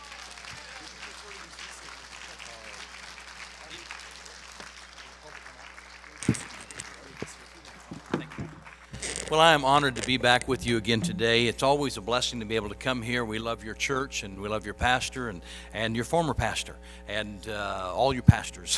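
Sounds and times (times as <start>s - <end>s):
church congregation at Pacific Baptist applauding to welcome a guest speaker: 0.0s - 9.0s
speech: 9.3s - 18.7s.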